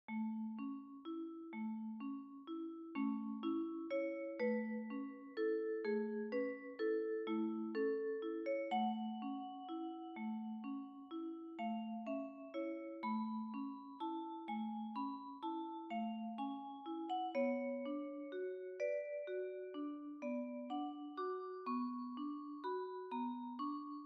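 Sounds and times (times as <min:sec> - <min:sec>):
lullaby for solo viola and ensemble: 0:00.0 - 0:24.0.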